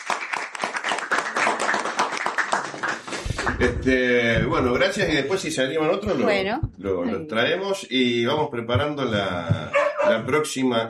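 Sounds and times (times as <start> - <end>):
audience applause for students: 0.0 - 4.3
speech: 3.5 - 10.8.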